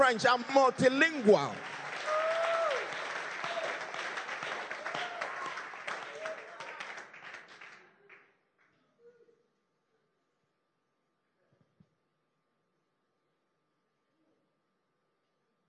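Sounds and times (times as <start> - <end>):
speech: 0.0 - 1.7
audience clapping: 0.0 - 8.3.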